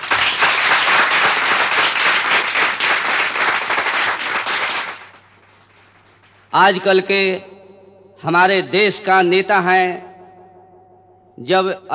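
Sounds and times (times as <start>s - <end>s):
audience applause: 0.0s - 5.3s
speech: 6.6s - 7.5s, 8.2s - 10.1s, 11.4s - 11.9s.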